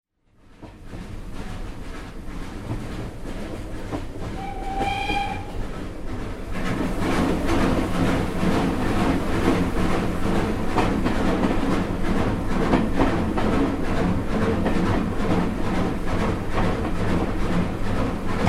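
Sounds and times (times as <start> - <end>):
entering Summerseat tunnel: 0.1 - 18.4.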